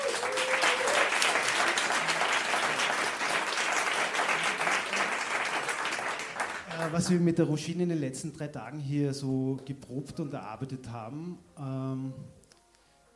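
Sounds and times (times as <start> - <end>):
audience applause: 0.0 - 7.2
speech: 6.9 - 12.4.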